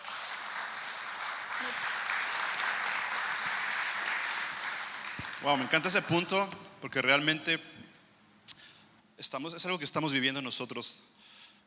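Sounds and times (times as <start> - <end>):
crowd applause: 0.0 - 6.2
speech: 5.4 - 7.7, 9.2 - 11.1.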